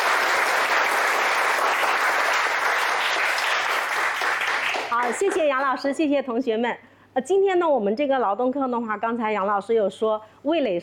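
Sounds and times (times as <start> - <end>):
classroom applause: 0.0 - 5.8
speech: 5.1 - 10.8.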